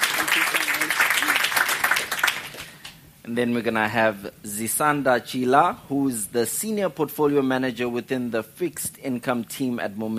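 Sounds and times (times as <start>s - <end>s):
audience round of applause: 0.0s - 2.7s
speech: 3.3s - 10.1s.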